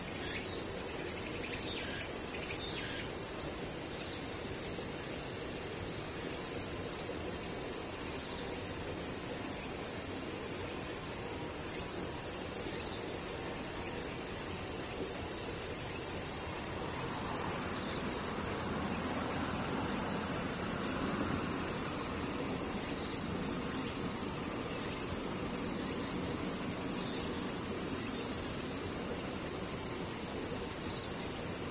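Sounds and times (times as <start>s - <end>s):
insects buzzing and whirring: 0.0s - 31.7s.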